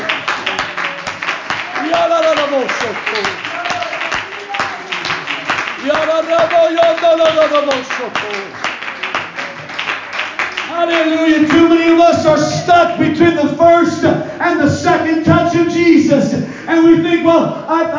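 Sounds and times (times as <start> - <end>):
congregation clapping hands in worship at a Sunday church service: 0.0 - 17.9
speech: 2.6 - 3.5, 7.2 - 8.7, 10.8 - 17.9.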